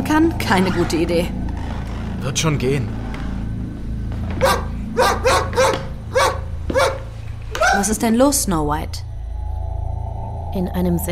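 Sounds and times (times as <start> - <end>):
low hum: 0.0 - 11.0
speech: 0.1 - 1.4, 2.2 - 3.0, 7.8 - 9.1, 10.5 - 11.0
dog barking: 4.4 - 7.8.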